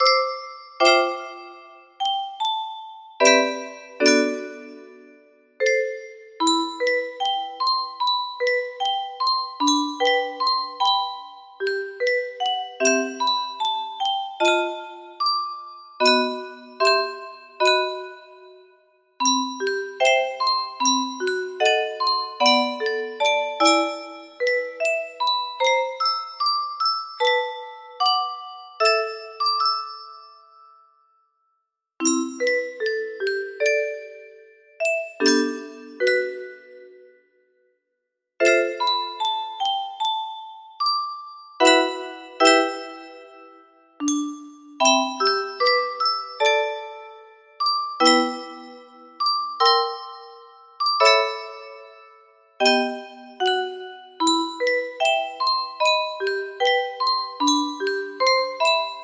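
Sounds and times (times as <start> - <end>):
music box lullaby melody: 0.0 - 37.5, 38.4 - 59.0.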